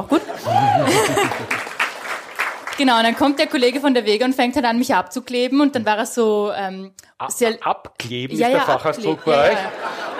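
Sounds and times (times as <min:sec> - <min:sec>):
speech: 0:00.0 - 0:01.7, 0:02.8 - 0:10.1
person laughing: 0:00.4 - 0:01.6.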